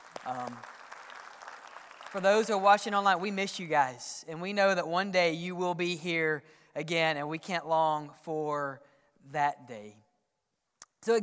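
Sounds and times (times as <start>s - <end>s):
audience applause: 0.0s - 3.2s
speech: 0.2s - 0.7s, 2.1s - 10.0s, 11.0s - 11.2s.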